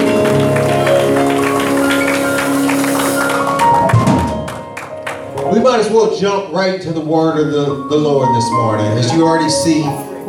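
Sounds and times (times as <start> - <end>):
audience clapping: 0.0 - 5.7
speech: 5.7 - 10.2.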